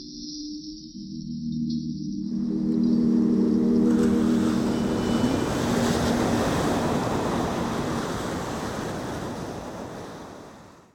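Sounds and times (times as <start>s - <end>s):
backing track music: 0.7s - 5.7s
waves: 2.2s - 10.9s.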